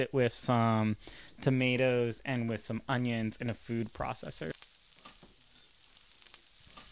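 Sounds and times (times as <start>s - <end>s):
speech: 0.0s - 4.6s
pork sizzling in a frying pan: 3.5s - 6.9s.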